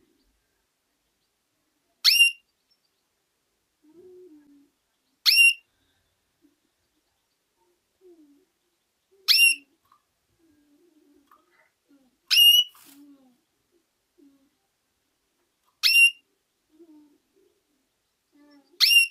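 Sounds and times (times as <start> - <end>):
female canary calls: 2.0 - 2.5, 5.2 - 5.7, 8.4 - 10.1, 11.5 - 13.0, 15.7 - 16.4, 18.4 - 19.0.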